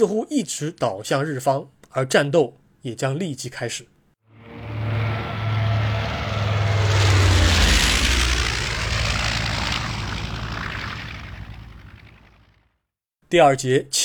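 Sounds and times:
speech: 0:00.0 - 0:03.9, 0:13.3 - 0:14.0
Japanese propeller warplanes flying over Pearl Harbor: 0:04.3 - 0:12.6.

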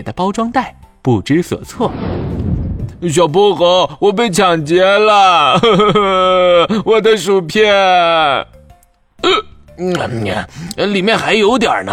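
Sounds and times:
speech: 0:00.0 - 0:08.6, 0:09.2 - 0:11.9
person voicing burps of a seagull after eating: 0:09.2 - 0:09.6.

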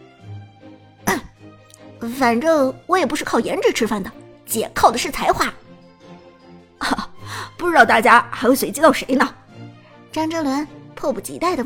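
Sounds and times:
person coughing: 0:01.1 - 0:01.4
speech: 0:02.0 - 0:05.6, 0:07.6 - 0:09.4, 0:10.1 - 0:11.6.

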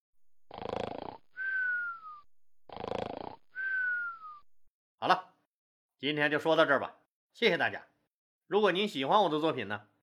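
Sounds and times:
people snoring across a military camp: 0:00.4 - 0:01.4, 0:02.7 - 0:03.6
speech: 0:06.0 - 0:07.9, 0:08.5 - 0:09.9.

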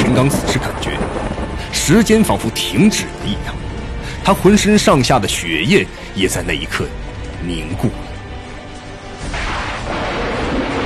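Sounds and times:
loud thunder: 0:00.0 - 0:02.7, 0:09.2 - 0:10.8
speech: 0:00.2 - 0:01.0, 0:01.8 - 0:03.6, 0:04.2 - 0:08.0.

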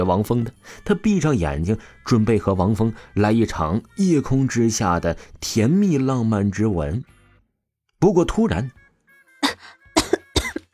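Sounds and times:
speech: 0:00.0 - 0:07.2, 0:08.0 - 0:08.8
fake polite coughs with a throaty ahem: 0:09.4 - 0:10.7.

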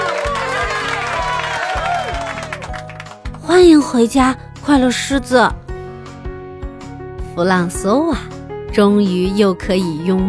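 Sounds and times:
crowd cheering: 0:00.0 - 0:03.1
speech: 0:03.6 - 0:05.6, 0:07.4 - 0:10.2.

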